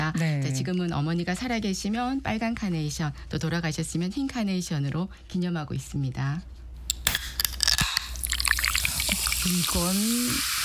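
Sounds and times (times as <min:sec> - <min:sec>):
speech: 0:00.6 - 0:06.5, 0:09.4 - 0:10.5
Coca-Cola drink can cracked open: 0:06.9 - 0:08.3
Coca-Cola fizzing and bubbling: 0:07.6 - 0:10.6.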